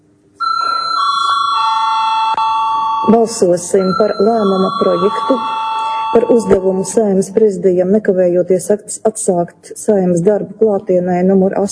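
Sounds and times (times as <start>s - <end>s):
parliament voting bell ringing: 0.4s - 7.4s
speech: 3.1s - 11.7s.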